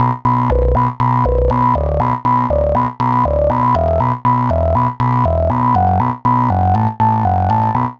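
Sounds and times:
frog bass line: 0.0s - 7.9s.

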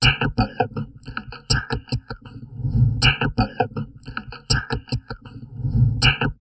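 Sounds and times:
heavily processed drum loops: 0.0s - 2.2s, 3.0s - 5.2s
person talking: 0.0s - 6.4s.

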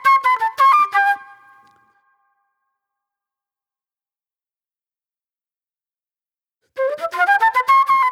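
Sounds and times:
old soul flute music: 0.0s - 2.2s, 6.8s - 8.1s.

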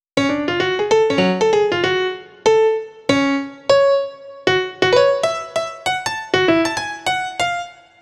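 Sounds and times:
cinematic funk piano solo: 0.2s - 8.0s.

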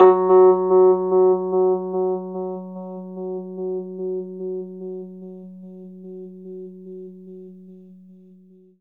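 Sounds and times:
Rhodes electric piano octave F sharp: 0.0s - 6.5s.

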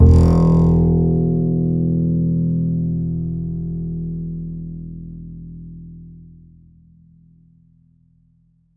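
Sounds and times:
double bass playing E: 0.0s - 6.2s.

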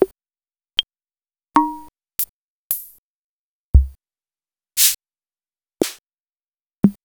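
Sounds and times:
Vermona ER-9 drum machine: 3.8s - 4.0s.

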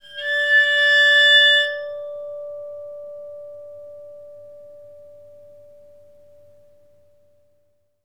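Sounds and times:
waterphone: 0.0s - 6.1s.

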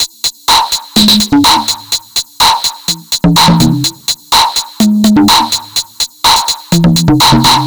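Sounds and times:
percussion: 0.0s - 7.6s.

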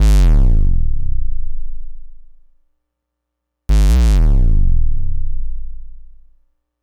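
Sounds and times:
synth ultra bass: 0.0s - 2.5s, 3.7s - 6.4s.

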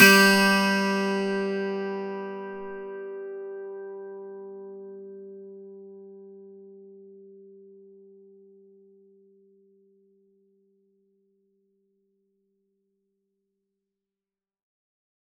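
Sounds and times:
plucked 12-string acoustic and electric guitar: 0.0s - 5.7s.

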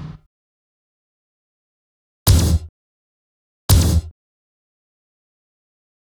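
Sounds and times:
kick drum: 2.3s - 2.7s, 3.7s - 4.1s.

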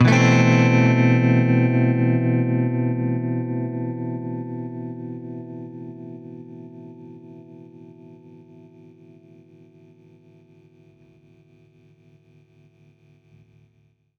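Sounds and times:
baritone guitar A minor add9 chord: 0.0s - 10.0s.

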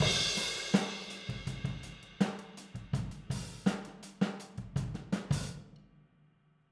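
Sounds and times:
boogaloo outro drums recorded overhead: 0.0s - 5.7s.

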